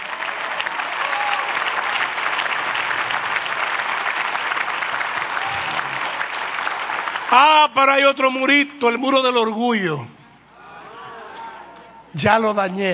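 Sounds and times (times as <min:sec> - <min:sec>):
thin lukewarm congregation applause during a church sermon: 0:00.0 - 0:08.5
speech: 0:07.3 - 0:10.2, 0:12.1 - 0:12.9.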